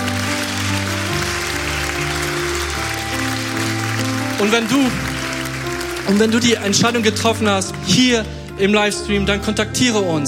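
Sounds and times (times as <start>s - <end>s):
audience applause: 0.0s - 7.9s
sustained shifting keyboard chords: 0.0s - 10.2s
speech: 4.4s - 5.1s, 6.1s - 10.2s.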